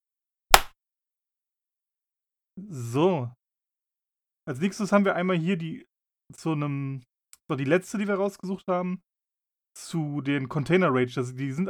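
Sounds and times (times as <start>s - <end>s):
hand clap: 0.5s - 0.7s
speech: 2.6s - 3.4s, 4.5s - 9.1s, 9.8s - 11.6s.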